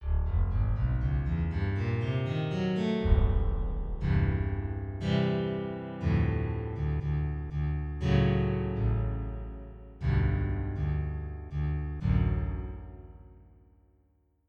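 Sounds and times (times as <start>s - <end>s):
soft guitar: 0.0s - 13.5s.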